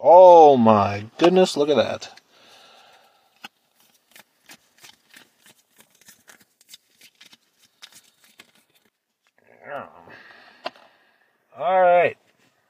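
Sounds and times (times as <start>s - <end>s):
speech: 0.1s - 2.2s
tarot cards being pulled and handled: 2.8s - 9.0s.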